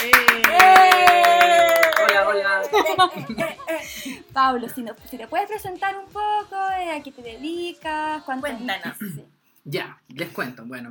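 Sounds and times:
audience applause: 0:00.0 - 0:03.3
laughter: 0:00.5 - 0:04.2
speech: 0:03.0 - 0:10.9.

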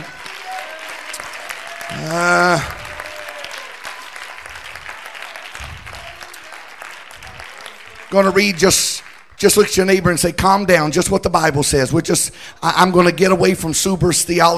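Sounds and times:
audience clapping hands: 0:00.0 - 0:10.4
speech: 0:01.9 - 0:02.8, 0:08.1 - 0:14.5.

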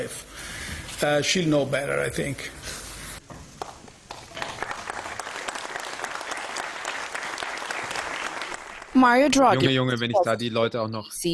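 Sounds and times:
speech: 0:01.0 - 0:02.8, 0:09.0 - 0:11.3
audience applause after a press conference: 0:03.6 - 0:09.4.

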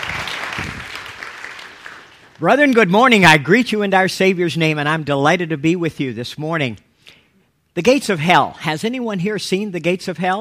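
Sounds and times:
audience applause: 0:00.0 - 0:02.4
speech: 0:02.4 - 0:06.9, 0:07.8 - 0:10.3.

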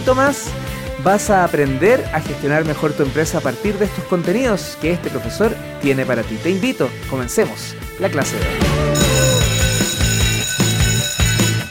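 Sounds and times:
speech: 0:00.0 - 0:09.0
electronic school bell ringing in a classroom: 0:08.9 - 0:11.7.

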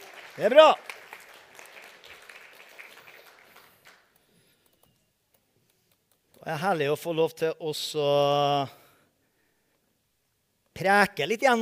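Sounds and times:
audience applause: 0:00.0 - 0:04.1
speech: 0:00.4 - 0:00.9, 0:06.5 - 0:08.8, 0:10.8 - 0:11.6.

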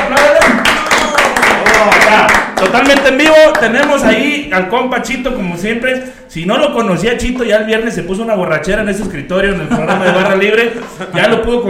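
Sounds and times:
crowd applause: 0:00.0 - 0:04.2
speech: 0:02.6 - 0:11.6
laughter: 0:09.5 - 0:11.5.

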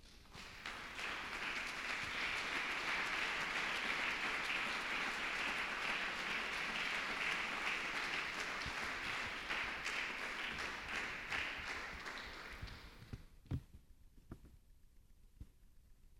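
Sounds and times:
audience applause: 0:00.3 - 0:13.1.

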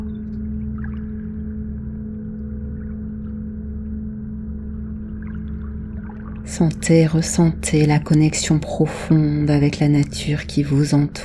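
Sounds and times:
low sustained tonal hum: 0:00.0 - 0:11.2
flowing water: 0:05.1 - 0:07.6
speech: 0:06.5 - 0:11.2.

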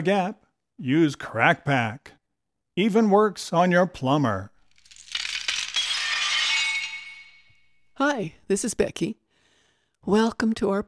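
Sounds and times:
speech: 0:00.0 - 0:02.2, 0:02.8 - 0:04.5, 0:08.0 - 0:09.2, 0:10.0 - 0:10.8
ball smashing through a glass picture window: 0:04.6 - 0:08.0
glass shards tinkling: 0:04.7 - 0:07.9.

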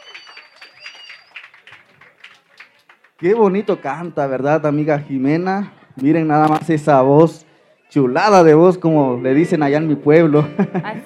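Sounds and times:
high-pitched cheering or whistling: 0:00.0 - 0:02.0
applause: 0:00.0 - 0:03.7
speech: 0:03.2 - 0:11.0
laughter: 0:10.2 - 0:11.0.

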